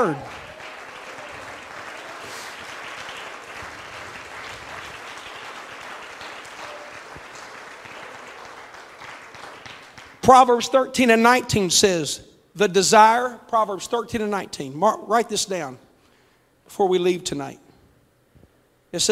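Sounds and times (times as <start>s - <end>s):
speech: 0.0s - 0.4s, 10.3s - 15.8s, 16.7s - 17.6s, 18.9s - 19.1s
audience clapping: 0.0s - 10.5s.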